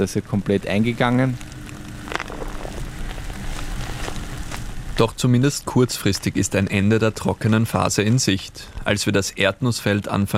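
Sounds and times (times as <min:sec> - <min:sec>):
speech: 0:00.0 - 0:01.5, 0:05.0 - 0:10.3
first raindrops falling on a peanut field: 0:00.0 - 0:10.3.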